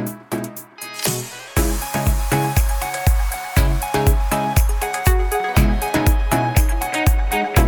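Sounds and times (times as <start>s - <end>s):
Persian pop song playing: 0.0s - 7.6s.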